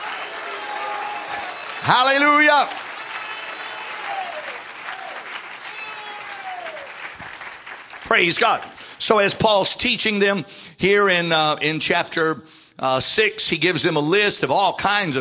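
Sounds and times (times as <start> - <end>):
audience clapping hands: 0.0 - 9.3
speech: 1.8 - 2.8, 8.1 - 15.2.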